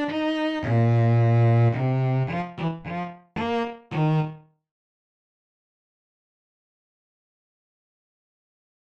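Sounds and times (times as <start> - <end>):
bass: 0.0 - 4.4.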